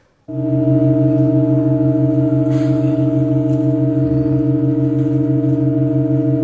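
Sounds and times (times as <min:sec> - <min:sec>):
chord change in a very slow music piece: 0:00.3 - 0:06.4.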